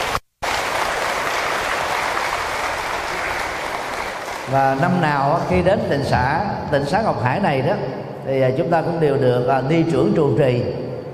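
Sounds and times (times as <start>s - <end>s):
loud round of applause: 0.0s - 5.0s
speech: 4.5s - 10.8s.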